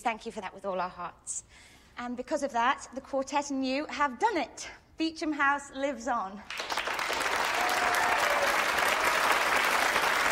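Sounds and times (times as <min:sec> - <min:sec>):
speech: 0:00.0 - 0:06.7
audience applause: 0:06.5 - 0:10.2.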